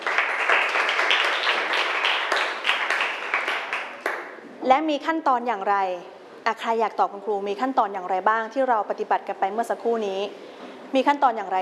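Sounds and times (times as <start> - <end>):
classroom applause for a student: 0.0 - 4.4
speech: 4.7 - 11.5.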